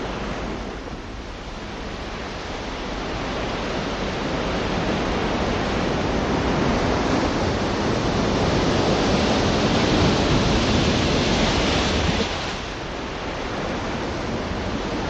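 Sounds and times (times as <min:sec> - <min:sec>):
reversed pitch-shifted seashore ambience: 0:00.0 - 0:15.0.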